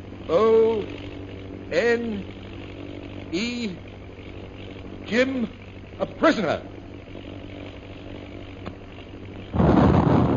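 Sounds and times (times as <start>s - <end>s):
speech: 0.3s - 1.0s, 1.7s - 2.4s, 3.3s - 3.9s, 5.1s - 6.7s
bomb explosion: 9.6s - 10.3s.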